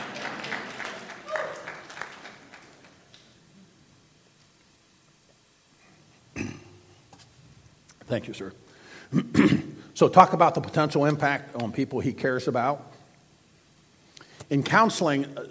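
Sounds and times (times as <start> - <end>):
audience applause: 0.0 - 3.4
speech: 8.1 - 12.9, 14.5 - 15.4.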